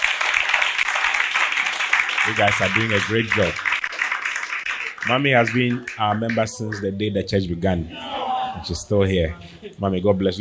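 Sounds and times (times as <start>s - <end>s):
crowd applauding: 0.0s - 6.9s
speech: 2.3s - 3.7s, 5.0s - 10.3s.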